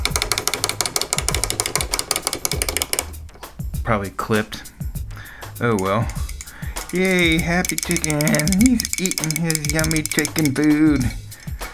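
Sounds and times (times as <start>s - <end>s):
wind-up toy duck clockwork on table: 0.0s - 3.1s, 5.7s - 11.7s
speech: 3.9s - 4.7s, 5.6s - 6.3s, 6.9s - 11.2s.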